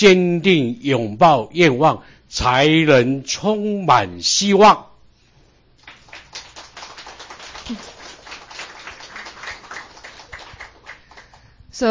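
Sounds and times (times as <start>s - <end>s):
speech: 0.0s - 4.9s, 7.7s - 7.9s
audience applause: 5.8s - 11.4s.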